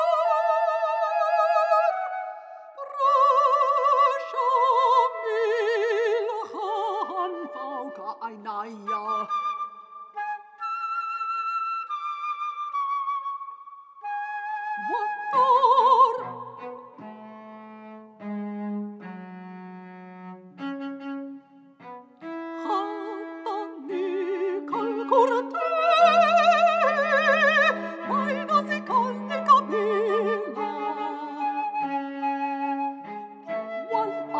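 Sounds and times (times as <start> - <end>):
cello: 0.0 - 9.6, 14.0 - 34.3
flute: 0.0 - 17.4, 20.6 - 34.3
mezzo-soprano singing in Arabic: 2.8 - 9.4, 14.8 - 16.8, 22.6 - 31.7, 33.8 - 34.3.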